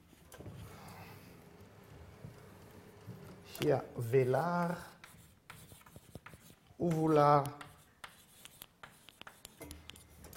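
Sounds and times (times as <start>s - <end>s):
speech: 3.6s - 4.9s, 6.8s - 7.6s
handwriting on a board: 4.0s - 10.3s.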